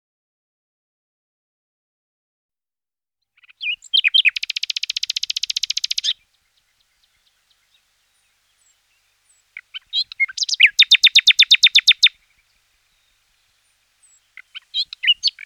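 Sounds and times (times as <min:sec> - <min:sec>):
common nightingale singing repeated notes and a very fast rattling trill: 0:03.4 - 0:15.4.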